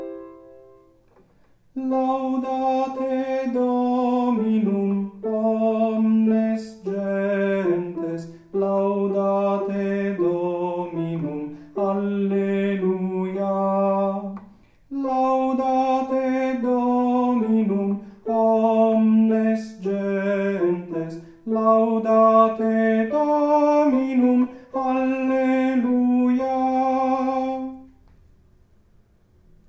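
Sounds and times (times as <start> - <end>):
sopranos singing: 1.8 - 28.0.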